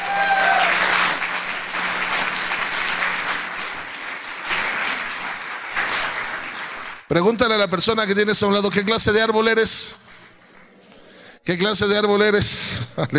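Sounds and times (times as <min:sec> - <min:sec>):
audience applauding: 0:00.0 - 0:07.1
speech: 0:07.1 - 0:10.0, 0:11.5 - 0:13.1.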